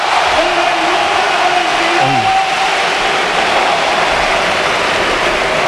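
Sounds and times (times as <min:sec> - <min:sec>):
stadium crowd ovation: 0:00.0 - 0:05.5.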